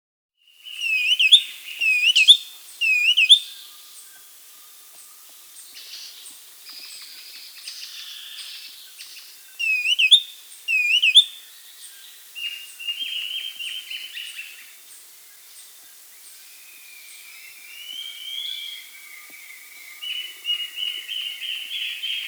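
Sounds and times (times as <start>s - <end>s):
black-capped becard whistled calls in South America: 0.6s - 3.8s, 6.9s - 14.7s, 16.5s - 22.2s.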